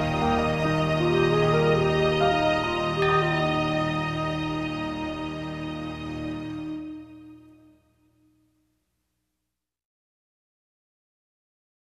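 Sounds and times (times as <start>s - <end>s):
harps: 0.0s - 8.4s.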